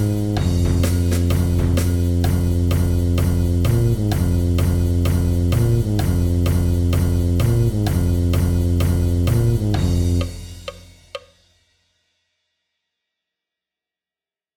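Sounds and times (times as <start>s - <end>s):
rhythm: 0.0s - 11.3s.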